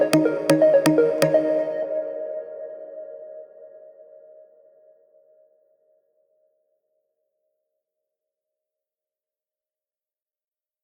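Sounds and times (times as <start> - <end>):
instrumental music: 0.0 - 2.0.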